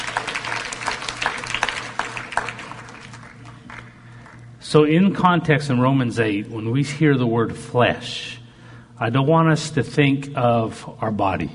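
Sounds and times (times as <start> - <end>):
audience clapping hands: 0.0 - 4.5
speech: 4.7 - 8.4, 9.0 - 11.5.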